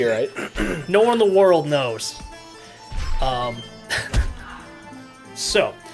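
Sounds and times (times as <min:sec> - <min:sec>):
speech: 0:00.0 - 0:02.3, 0:03.2 - 0:04.2, 0:05.4 - 0:05.8
fighting game combat music: 0:00.0 - 0:05.9
punching thwacks and thuds: 0:04.1 - 0:04.5.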